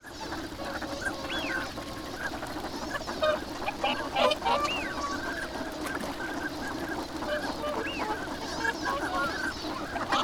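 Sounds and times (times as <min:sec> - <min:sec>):
flock of ducks quacking: 0:00.5 - 0:10.2.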